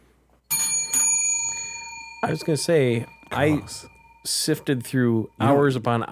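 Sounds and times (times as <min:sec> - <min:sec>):
hosts ringing bells: 0:00.5 - 0:06.1
speech: 0:02.2 - 0:06.1.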